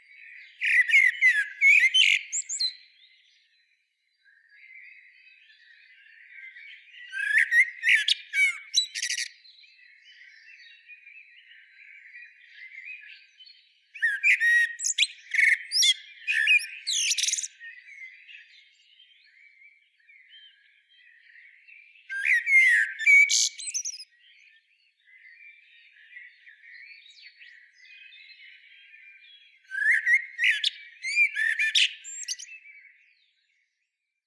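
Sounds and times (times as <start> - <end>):
soft chirping from other birds: 0.2 - 33.1
common blackbird harsh chattering calls and whistles: 8.4 - 9.3, 16.9 - 17.5, 22.5 - 24.0.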